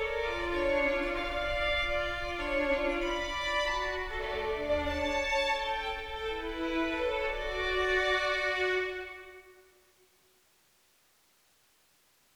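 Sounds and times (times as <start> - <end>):
two violins playing: 0.0 - 9.6.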